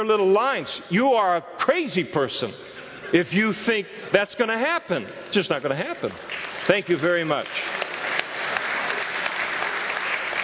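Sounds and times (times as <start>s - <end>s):
speech: 0.0s - 7.9s
audience applause: 6.2s - 10.4s.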